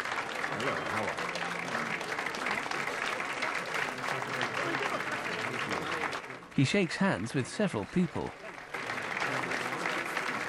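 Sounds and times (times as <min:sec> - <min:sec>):
admirers applauding a professor on a staircase: 0:00.0 - 0:10.4
crowd murmur: 0:00.0 - 0:10.4
speech: 0:00.6 - 0:01.4, 0:06.6 - 0:08.4.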